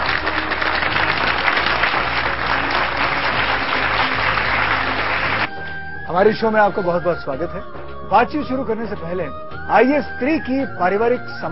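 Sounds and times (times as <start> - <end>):
loud audience applause: 0.0 - 5.5
speech: 6.2 - 11.5.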